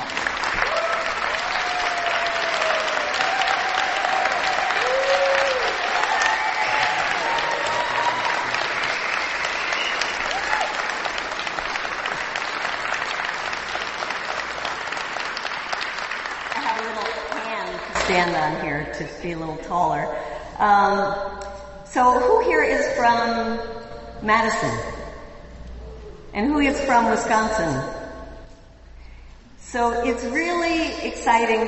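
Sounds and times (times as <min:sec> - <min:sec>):
audience applause: 0:00.0 - 0:17.9
speech: 0:18.2 - 0:21.3, 0:21.9 - 0:24.9, 0:26.4 - 0:27.9, 0:29.7 - 0:31.6.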